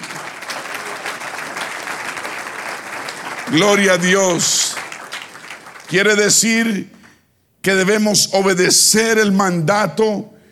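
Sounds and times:
audience applause: 0.0 - 6.7
speech: 3.5 - 4.6, 5.9 - 7.0, 7.6 - 10.4.

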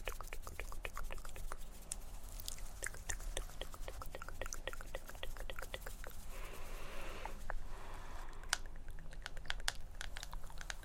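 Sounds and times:
mouth sounds: 0.0 - 6.3, 7.0 - 10.8
soft scratchy rustle: 0.0 - 8.3.

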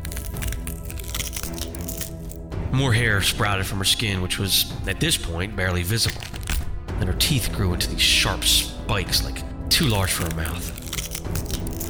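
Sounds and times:
bones snapping and cracking: 0.0 - 2.4, 5.9 - 6.8, 9.8 - 11.8
speech: 2.7 - 6.4, 7.0 - 11.4.

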